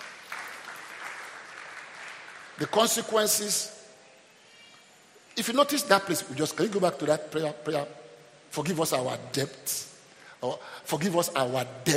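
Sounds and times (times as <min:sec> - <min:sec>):
church congregation clapping hands during a sermon: 0:00.0 - 0:03.7
speech: 0:02.6 - 0:03.8, 0:05.4 - 0:11.9.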